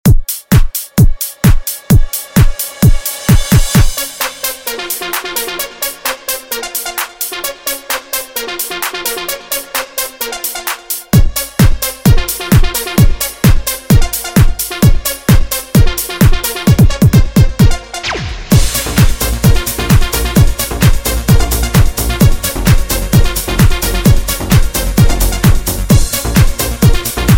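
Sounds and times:
130 bpm music track: 0.0s - 27.3s.

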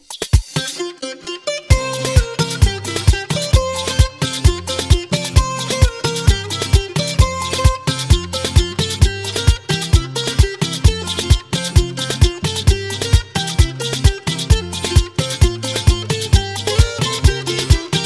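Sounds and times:
remix intro music: 0.2s - 18.0s.

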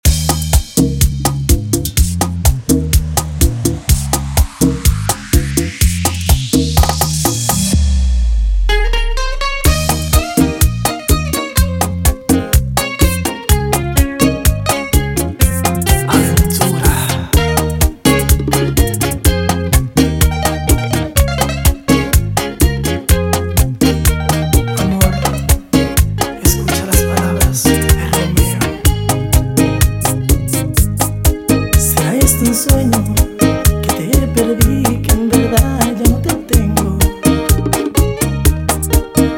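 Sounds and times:
intro outro music: 0.0s - 39.3s.

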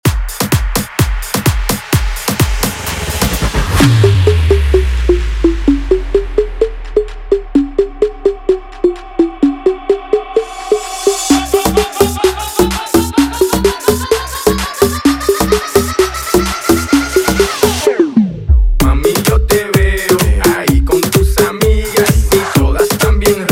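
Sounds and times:
aleteo dance music at 128 BPM: 0.0s - 23.5s.

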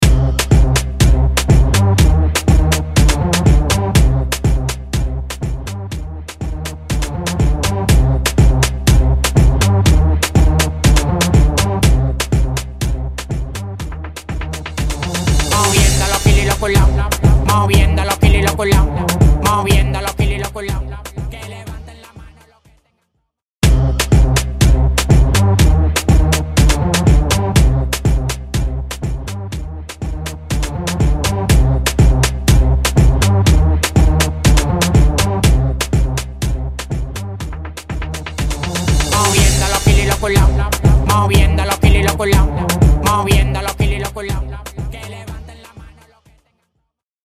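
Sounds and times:
break beat at 122 BPM: 0.0s - 22.4s, 23.6s - 46.1s.

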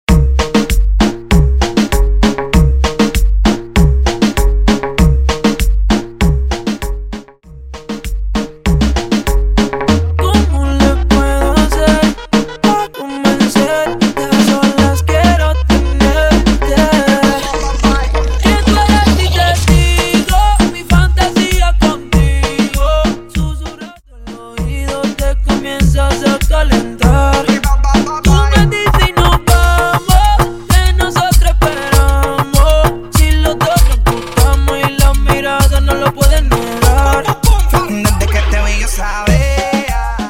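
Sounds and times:
remix music: 0.1s - 40.2s.

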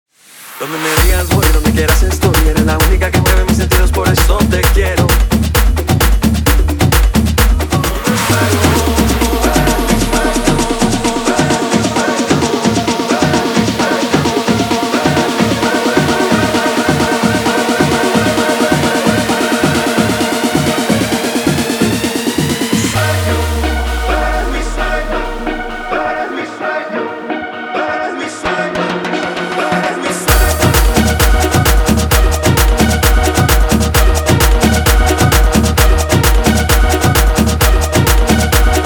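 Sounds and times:
guaracha remix: 0.4s - 38.8s.

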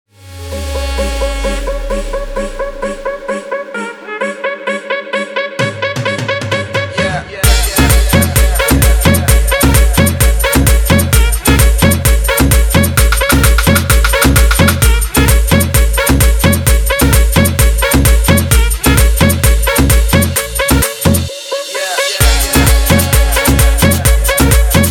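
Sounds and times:
guaracha remix music: 0.2s - 24.8s.

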